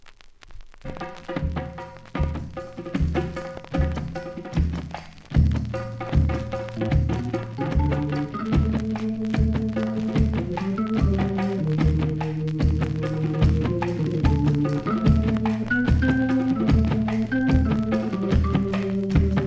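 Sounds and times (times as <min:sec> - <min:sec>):
soul drums: 0:00.2 - 0:19.4.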